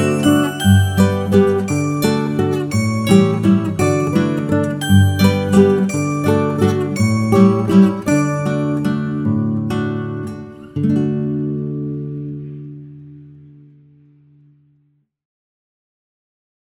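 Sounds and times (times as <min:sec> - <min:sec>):
instrumental backing track without melody: 0:00.0 - 0:13.1.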